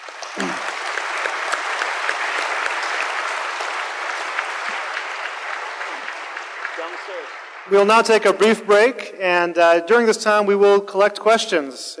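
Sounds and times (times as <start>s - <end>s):
audience applause: 0.0s - 9.4s
speech: 7.1s - 11.9s.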